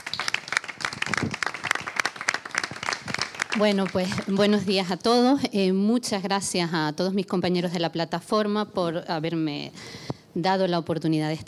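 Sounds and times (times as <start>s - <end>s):
audience applause: 0.0s - 4.3s
speech: 3.6s - 11.4s.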